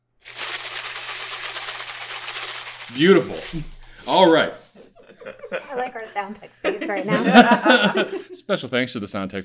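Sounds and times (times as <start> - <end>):
rice shaken as a snake-rattle sound effect: 0.2 - 4.7
speech: 2.9 - 9.4
laughter: 4.2 - 8.4.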